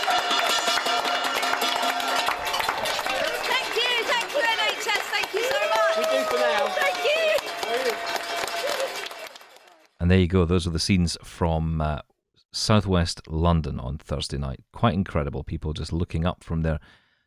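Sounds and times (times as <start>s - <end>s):
whoops, cheers and shouting voices: 0.0s - 9.8s
street crowd applauding: 0.0s - 10.0s
speech: 10.1s - 17.2s.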